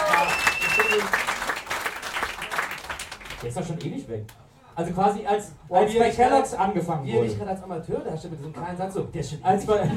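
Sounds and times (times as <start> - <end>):
applause: 0.0 - 3.8
speech: 3.4 - 9.9.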